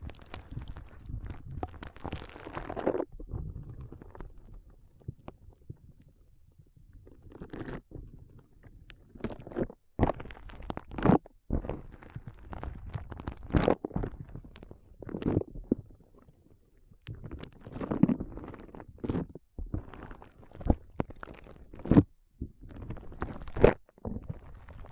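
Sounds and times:
foam squeezing and rubbing: 0:00.0 - 0:04.6, 0:09.0 - 0:16.0, 0:17.1 - 0:24.9
foam crunching and crackling: 0:00.0 - 0:05.6, 0:07.1 - 0:16.3, 0:17.0 - 0:24.9.

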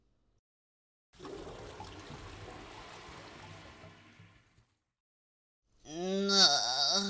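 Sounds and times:
shower water running while bathing: 0:01.2 - 0:04.7
person speaking: 0:05.9 - 0:07.0.

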